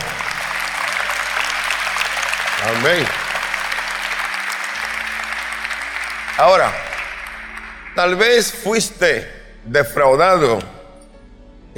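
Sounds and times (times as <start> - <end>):
audience applause: 0.0 - 8.6
speech: 2.6 - 3.2, 6.4 - 6.9, 8.0 - 10.7.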